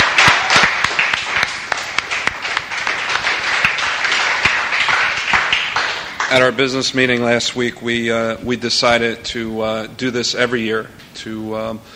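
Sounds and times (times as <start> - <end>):
audience round of applause: 0.0 - 6.6
speech: 6.3 - 11.9.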